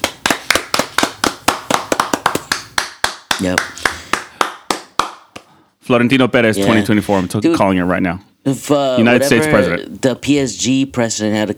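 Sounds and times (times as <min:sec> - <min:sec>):
crowd round of applause: 0:00.0 - 0:05.2
speech: 0:03.4 - 0:03.8, 0:05.9 - 0:11.5.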